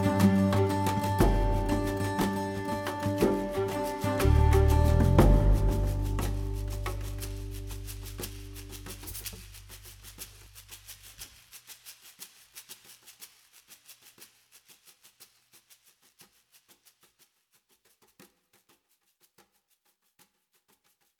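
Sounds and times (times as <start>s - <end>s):
charango: 0.0s - 10.4s.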